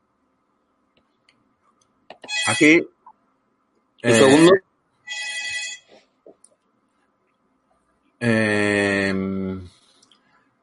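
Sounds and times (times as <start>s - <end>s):
telephone ringing for an incoming call: 2.3s - 2.8s, 5.1s - 5.9s
speech: 2.5s - 3.0s, 4.0s - 4.7s, 8.2s - 9.3s.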